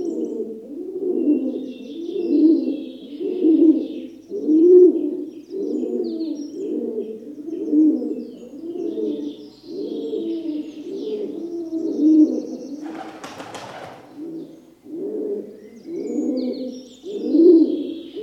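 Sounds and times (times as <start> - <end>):
faint high bird calls: 0.0 - 18.2
rock dove cooing: 0.0 - 18.2
rock dove wings flapping: 12.8 - 14.2.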